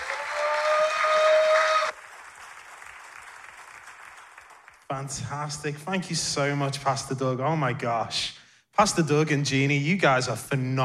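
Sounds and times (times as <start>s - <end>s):
church congregation applause welcoming a guest pastor: 0.0s - 5.9s
speech: 4.9s - 10.8s.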